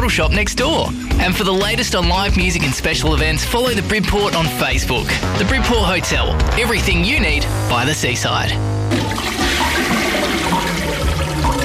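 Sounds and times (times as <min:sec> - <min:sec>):
speech: 0:00.1 - 0:09.3
toilet flushing: 0:08.9 - 0:11.6.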